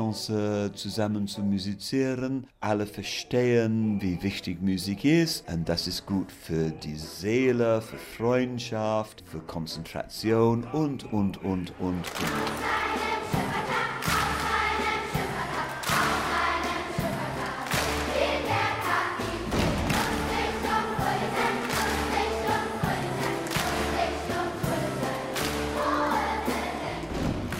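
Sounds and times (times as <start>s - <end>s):
speech: 0.1s - 12.8s
rhythmic clapping in five-four time: 11.6s - 27.5s.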